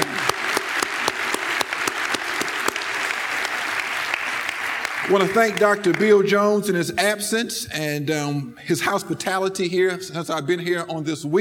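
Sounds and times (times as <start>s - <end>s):
audience applause: 0.0s - 6.2s
speech: 5.1s - 11.4s.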